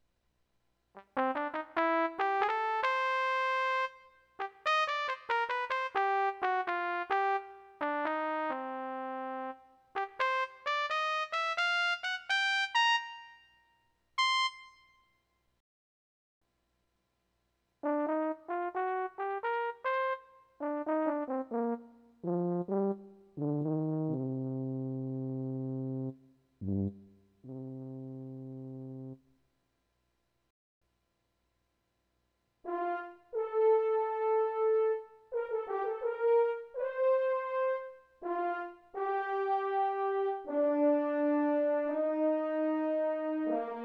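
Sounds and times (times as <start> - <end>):
brass instruments: 1.0 - 13.4, 17.8 - 29.2, 32.6 - 43.8.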